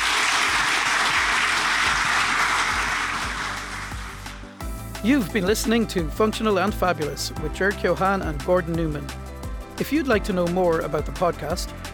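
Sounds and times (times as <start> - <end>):
crowd applause: 0.0 - 4.5
speech: 5.0 - 9.2, 9.8 - 11.9.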